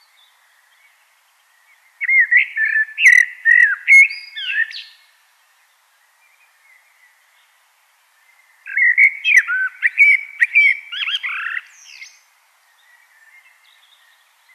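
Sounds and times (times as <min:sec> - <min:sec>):
common blackbird singing: 0:00.0 - 0:05.1, 0:08.2 - 0:14.5.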